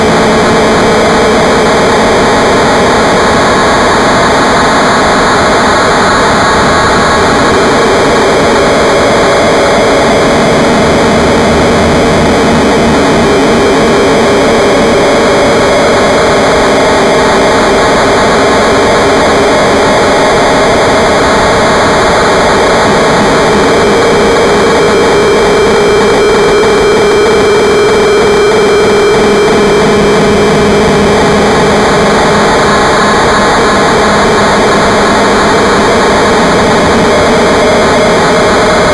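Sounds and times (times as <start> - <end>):
drone noise: 0.0 - 38.9.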